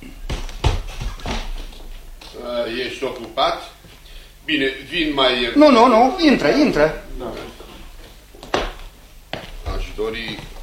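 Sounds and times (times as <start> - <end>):
knocking on a door: 0.3 - 1.6, 8.5 - 8.9
speech: 2.6 - 3.7, 4.5 - 7.5, 10.0 - 10.5.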